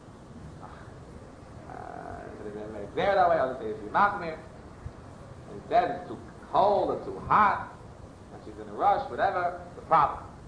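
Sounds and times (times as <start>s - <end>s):
frog croaking: 1.6s - 2.6s
speech: 2.9s - 4.5s, 5.5s - 7.7s, 8.4s - 10.3s.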